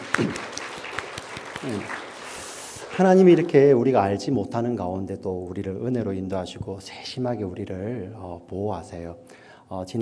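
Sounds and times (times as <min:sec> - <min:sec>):
audience applause: 0:00.0 - 0:03.6
speech: 0:01.6 - 0:02.0, 0:03.0 - 0:09.9.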